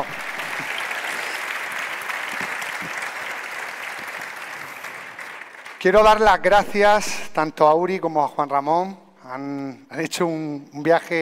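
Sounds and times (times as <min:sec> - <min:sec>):
audience applause: 0:00.0 - 0:06.2
speech: 0:05.8 - 0:11.2.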